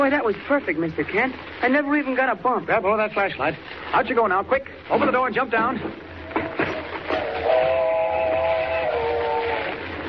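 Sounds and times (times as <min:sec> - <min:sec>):
speech: 0:00.0 - 0:06.5
approaching train rumbling: 0:05.8 - 0:10.0
long loud multi-tone train whistle: 0:07.1 - 0:09.8.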